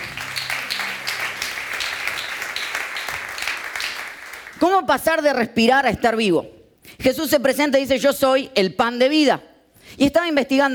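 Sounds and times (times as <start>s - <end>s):
audience applause: 0.0s - 4.6s
speech: 4.6s - 10.7s.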